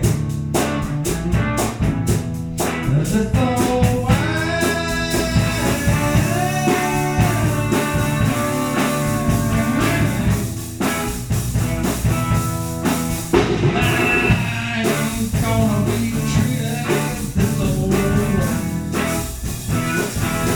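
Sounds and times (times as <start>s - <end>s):
bass guitar: 0.0s - 20.5s
drums: 0.0s - 20.5s
vocals: 2.6s - 10.8s, 13.3s - 20.5s.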